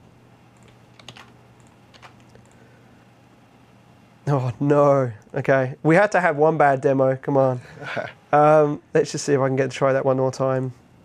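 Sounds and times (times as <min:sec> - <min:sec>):
low steady hum: 0:00.0 - 0:11.0
typing a password on a computer keyboard during a software sign-in demo: 0:00.6 - 0:02.6
speech: 0:04.3 - 0:10.8.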